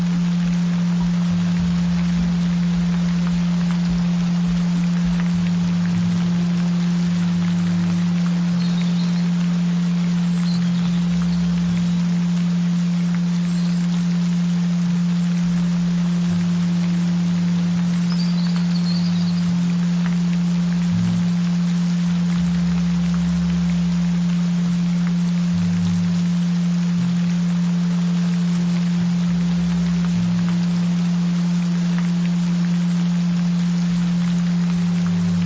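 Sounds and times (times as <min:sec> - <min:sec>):
gentle rain: 0:00.0 - 0:35.4.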